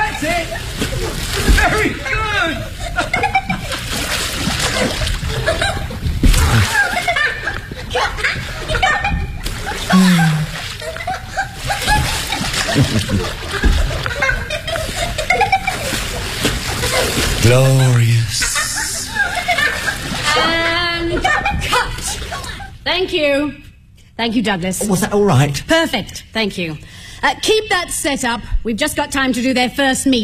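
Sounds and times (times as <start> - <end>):
water splashing as someone swims: 0.0 - 2.6, 3.4 - 7.5, 8.2 - 20.8
people talking and chuckling: 5.3 - 16.0, 17.4 - 22.8
speech: 23.0 - 30.2.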